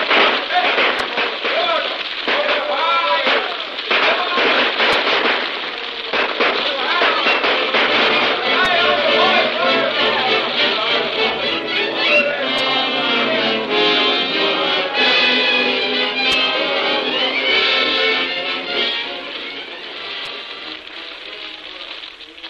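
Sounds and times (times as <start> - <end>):
rifle gunfire during a firefight among buildings: 0.0 - 9.5
voices shouting: 0.0 - 20.4.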